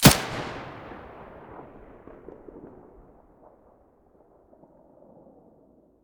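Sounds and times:
gun muzzle blast: 0.0s - 2.6s.

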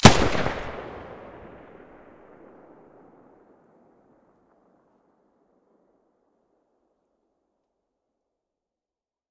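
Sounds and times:
UMP45 gun muzzle firing: 0.0s - 2.8s.

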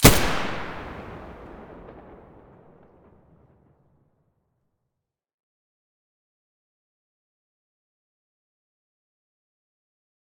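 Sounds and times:
G36 rifle muzzle gunshots: 0.0s - 2.5s.

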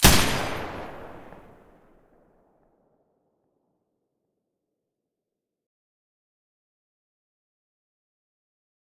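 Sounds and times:
M249 machine gun firing with silencer: 0.0s - 1.6s.

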